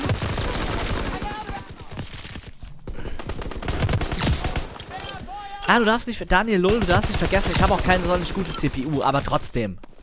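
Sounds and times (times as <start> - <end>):
rapid video game gunfire in a team deathmatch with a sniper: 0.0 - 5.4, 6.7 - 9.2
speech: 5.7 - 9.9.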